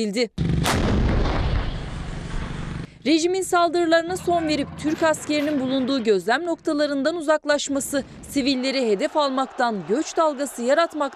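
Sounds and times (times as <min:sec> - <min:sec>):
speech: 0:00.0 - 0:01.0, 0:03.0 - 0:11.1
artillery fire: 0:00.4 - 0:02.8.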